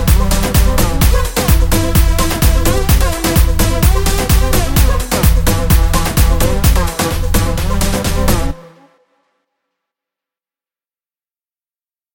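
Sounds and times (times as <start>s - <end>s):
music loop in E: 0.0s - 9.0s.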